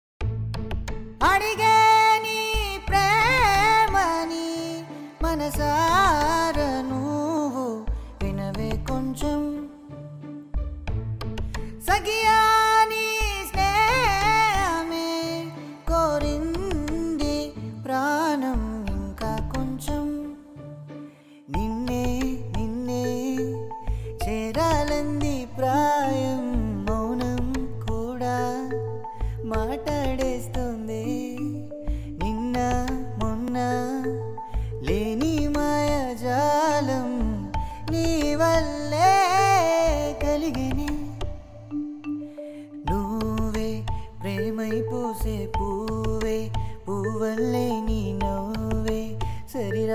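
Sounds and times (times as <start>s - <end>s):
Telugu song: 1.2s - 49.9s.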